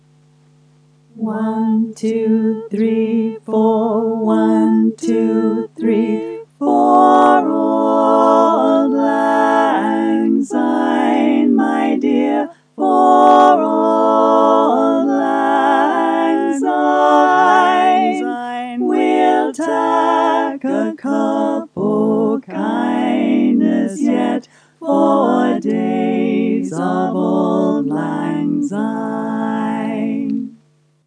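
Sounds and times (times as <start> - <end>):
full chorus singing words: 1.2 - 30.6.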